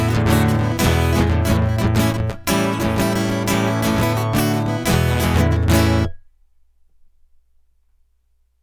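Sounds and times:
instrumental music: 0.0s - 6.2s.

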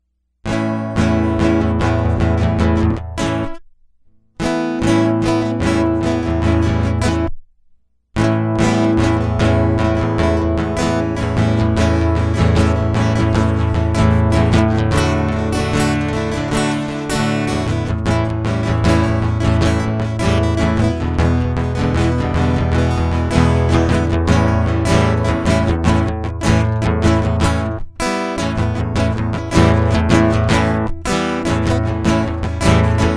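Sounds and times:
guitar loop: 0.5s - 3.6s, 4.4s - 7.3s, 8.2s - 33.1s.

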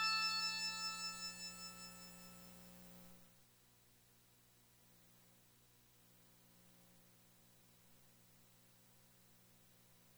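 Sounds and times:
instrumental music: 0.0s - 2.1s.

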